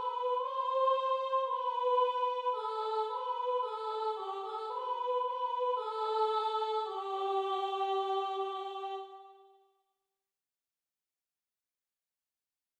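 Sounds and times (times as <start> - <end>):
soprano singing: 0.0 - 9.6.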